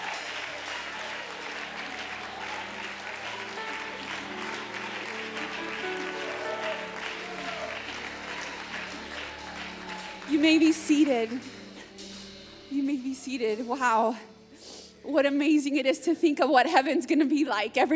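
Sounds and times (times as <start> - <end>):
audience hand clapping: 0.0 - 12.2
speech: 10.4 - 11.6, 12.8 - 14.3, 15.0 - 17.9.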